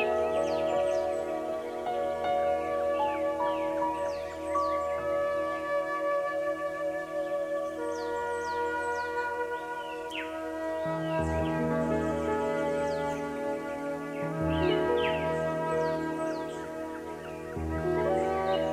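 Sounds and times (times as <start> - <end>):
relaxing bamboo flute music: 0.0 - 18.7
tropical forest sounds: 0.0 - 18.7.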